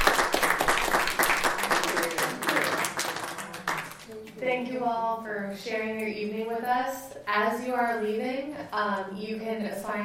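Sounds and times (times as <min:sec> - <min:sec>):
audience applause for poets: 0:00.0 - 0:04.0
speech: 0:04.5 - 0:10.0.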